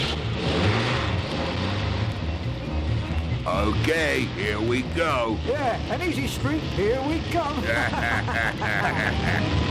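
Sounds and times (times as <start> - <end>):
truck starting down an old narrow dirt road: 0.0 - 9.6
speech: 3.6 - 9.6
laughter: 7.4 - 9.6.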